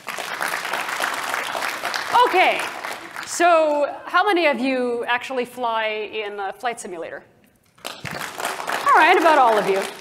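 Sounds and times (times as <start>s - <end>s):
crowd clapping: 0.0s - 3.8s, 7.8s - 10.0s
speech: 2.2s - 7.3s, 9.0s - 10.0s.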